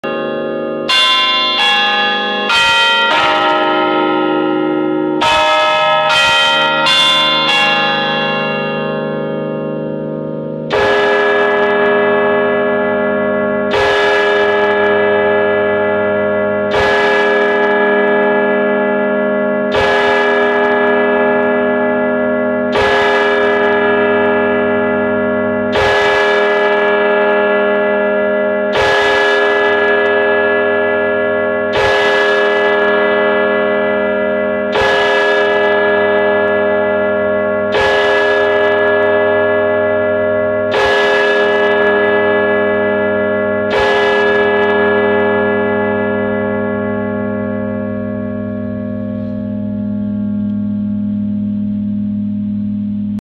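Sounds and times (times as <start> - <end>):
bell: 0.0 - 53.2.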